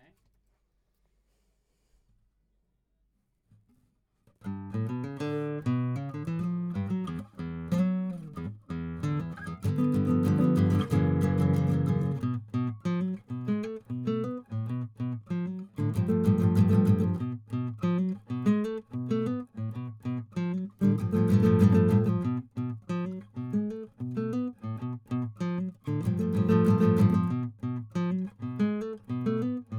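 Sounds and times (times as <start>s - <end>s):
guitar: 4.3s - 29.7s.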